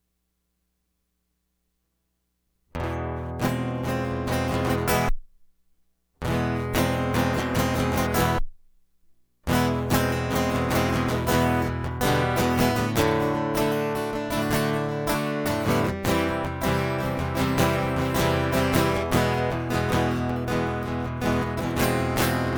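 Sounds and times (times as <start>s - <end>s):
guitar prequel: 2.7s - 5.2s, 6.2s - 8.5s, 9.4s - 22.5s.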